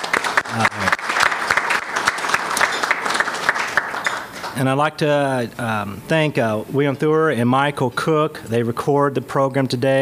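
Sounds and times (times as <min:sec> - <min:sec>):
crowd applause: 0:00.0 - 0:04.6
speech: 0:04.6 - 0:10.0.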